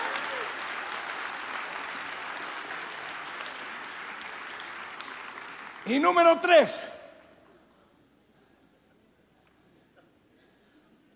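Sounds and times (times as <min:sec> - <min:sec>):
audience applause: 0:00.0 - 0:06.8
speech: 0:05.9 - 0:07.0.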